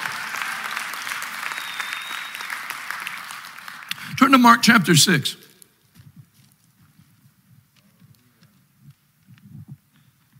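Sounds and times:
audience clapping hands: 0:00.0 - 0:05.4
speech: 0:04.2 - 0:05.4.

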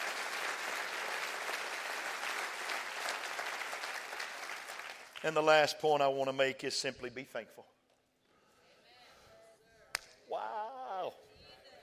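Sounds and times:
audience clapping: 0:00.0 - 0:05.6
speech: 0:05.2 - 0:07.8.

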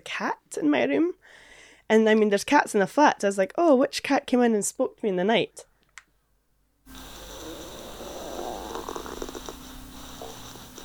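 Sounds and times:
speech: 0:00.2 - 0:05.7
steady hiss: 0:06.9 - 0:10.8
stomach rumbling in sleep recording: 0:06.9 - 0:10.8.

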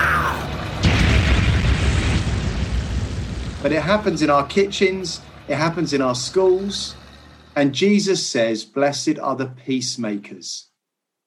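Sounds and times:
crackling debris: 0:00.0 - 0:05.5
tank cannon firing explosion: 0:00.3 - 0:04.4
speech: 0:03.6 - 0:07.0, 0:07.6 - 0:10.7.

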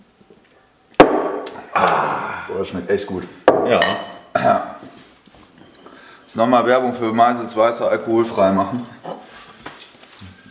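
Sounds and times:
speech: 0:01.8 - 0:04.8, 0:06.3 - 0:09.0
glasses clinking in a toast: 0:03.5 - 0:04.3, 0:05.6 - 0:06.0.

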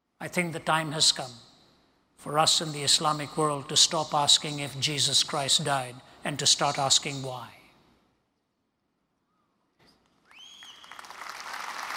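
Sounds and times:
speech: 0:00.2 - 0:01.5, 0:02.2 - 0:07.6
audience clapping: 0:10.2 - 0:11.9.

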